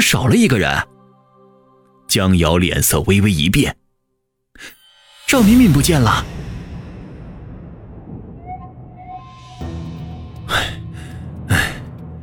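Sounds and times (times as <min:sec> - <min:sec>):
speech: 0:00.0 - 0:00.9, 0:02.1 - 0:03.8, 0:04.6 - 0:06.5
faint tonal whines: 0:04.8 - 0:10.5
low steady rumble: 0:05.1 - 0:12.2
shaky frightened gasping breaths in a dark corner of a backyard: 0:10.5 - 0:12.0.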